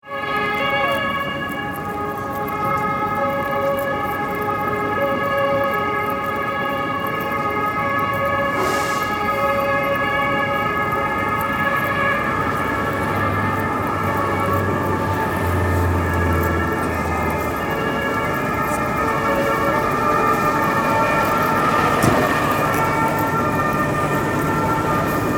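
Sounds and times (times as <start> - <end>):
distant police siren: 0.0 - 25.3.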